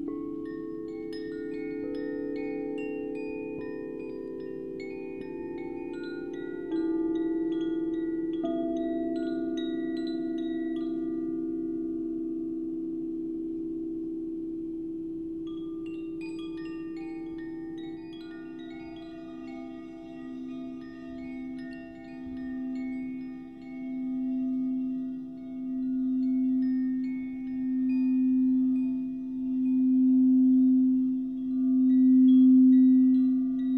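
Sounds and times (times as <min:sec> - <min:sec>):
singing bowl ringing for meditation: 0:00.0 - 0:33.7.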